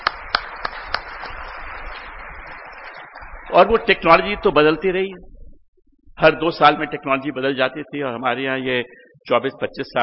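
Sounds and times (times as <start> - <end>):
audience applause: 0.0 - 2.8
speech: 3.5 - 5.3, 6.2 - 10.0.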